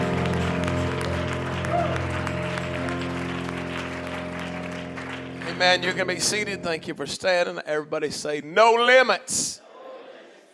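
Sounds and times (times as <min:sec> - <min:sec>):
audience clapping hands in worship: 0:00.0 - 0:06.8
speech: 0:05.6 - 0:09.6.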